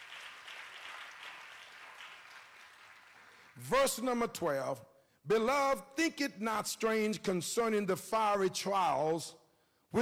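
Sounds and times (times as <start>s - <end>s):
hand clapping from audience: 0.0s - 4.0s
speech: 3.6s - 10.0s.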